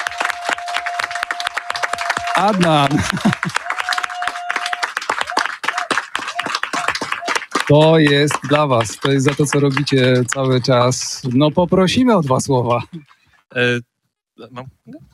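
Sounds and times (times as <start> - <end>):
audience applause: 0.0 - 11.8
speech: 2.4 - 3.6, 7.7 - 15.1
laughter: 2.4 - 4.0, 12.5 - 13.4.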